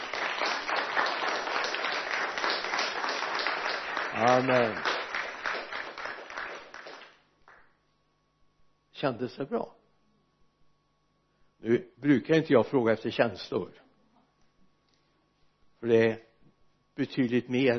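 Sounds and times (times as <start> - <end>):
resounding applause: 0.0 - 7.7
speech: 4.2 - 4.9, 9.0 - 9.8, 11.6 - 13.8, 15.8 - 16.3, 17.0 - 17.7.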